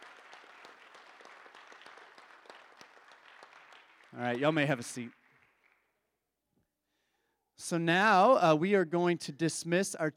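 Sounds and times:
church congregation applauding to welcome a new member: 0.0s - 6.0s
speech: 4.1s - 5.2s, 7.7s - 10.1s.

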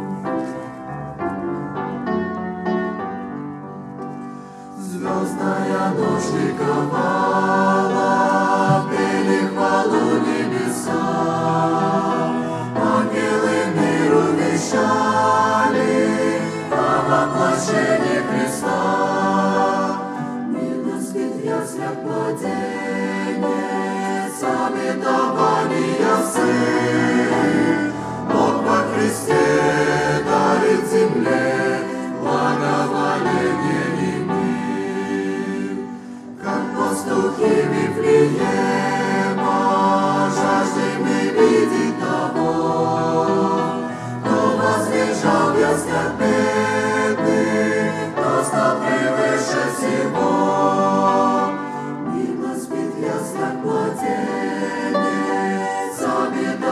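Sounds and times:
choir singing: 0.2s - 56.7s.

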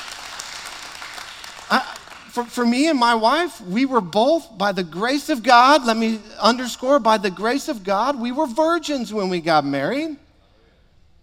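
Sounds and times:
audience clapping: 0.0s - 2.7s
speech: 1.7s - 10.2s.

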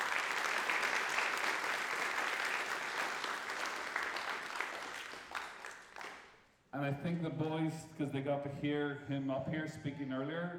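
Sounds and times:
crowd round of applause: 0.0s - 6.2s
speech: 6.8s - 10.5s.

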